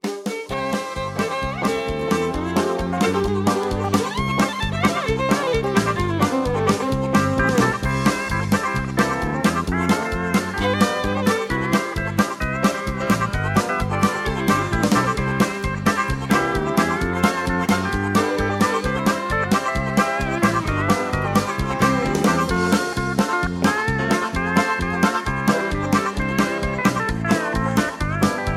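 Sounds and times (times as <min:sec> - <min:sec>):
instrumental music: 0:00.0 - 0:28.5.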